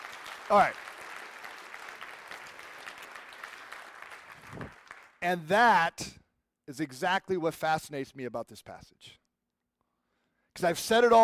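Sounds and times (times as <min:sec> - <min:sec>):
audience clapping: 0:00.0 - 0:05.2
speech: 0:00.5 - 0:00.8, 0:05.2 - 0:09.2, 0:10.6 - 0:11.2.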